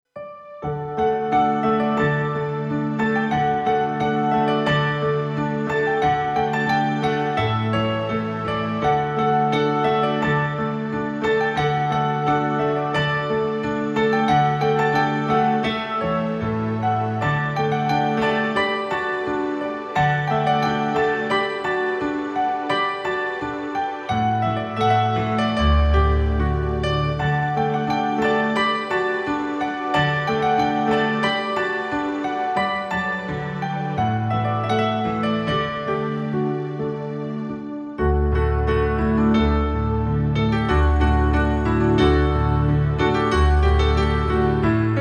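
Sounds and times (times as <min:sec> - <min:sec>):
piano: 0:00.0 - 0:44.9.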